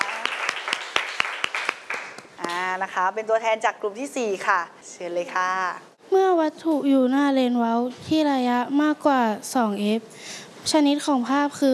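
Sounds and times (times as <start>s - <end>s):
classroom applause: 0.0s - 2.3s
speech: 2.8s - 11.7s.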